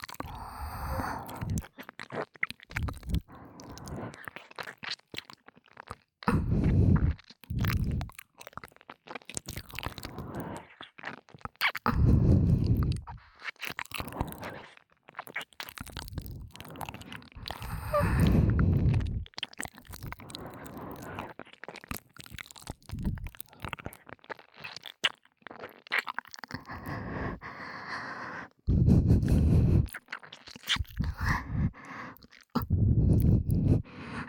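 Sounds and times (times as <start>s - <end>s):
ASMR ear licking sounds: 0.0s - 34.2s
ASMR breathy sighs: 0.2s - 1.7s, 2.8s - 4.4s, 6.3s - 8.1s, 10.0s - 10.8s, 11.9s - 13.4s, 14.0s - 14.8s, 16.2s - 19.2s, 20.0s - 21.4s, 26.5s - 30.0s, 30.9s - 34.2s.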